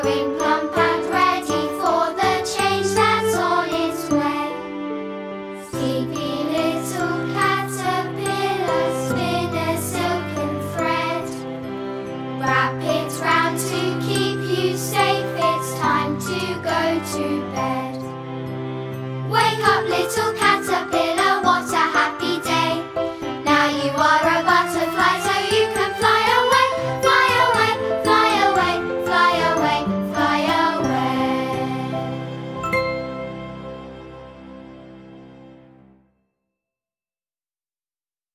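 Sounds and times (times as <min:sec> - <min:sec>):
vocals: 0:00.0 - 0:04.7, 0:05.6 - 0:11.5, 0:12.4 - 0:18.1, 0:19.3 - 0:32.9.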